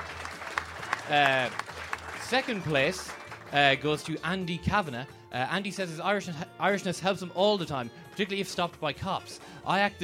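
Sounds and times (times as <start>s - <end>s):
round of applause: 0.0s - 4.2s
speech: 1.1s - 10.0s.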